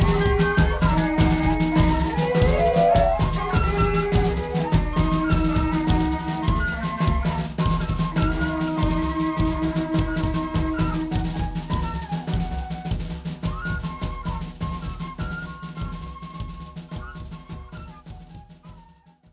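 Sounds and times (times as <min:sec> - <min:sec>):
music: 0:00.0 - 0:19.3.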